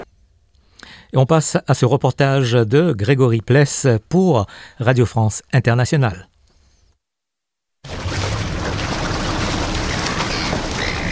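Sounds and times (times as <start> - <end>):
speech: 1.1 - 6.3
ocean surf: 7.8 - 11.1
gull cries: 9.6 - 11.1.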